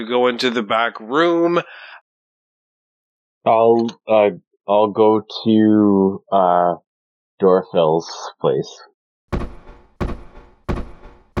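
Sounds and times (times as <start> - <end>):
speech: 0.0 - 2.0, 3.4 - 6.8, 7.4 - 8.9
front door slamming as a character stomps out: 9.3 - 11.3.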